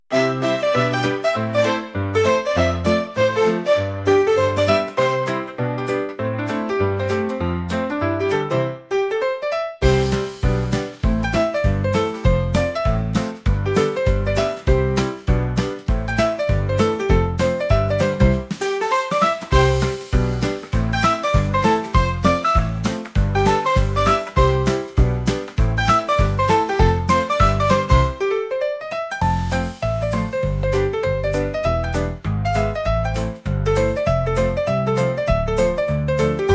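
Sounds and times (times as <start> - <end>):
instrumental music: 0.1 - 36.5.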